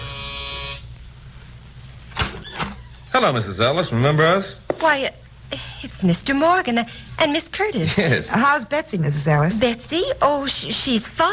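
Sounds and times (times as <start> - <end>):
electric doorbell buzz: 0.0 - 0.9
speech: 3.2 - 11.3.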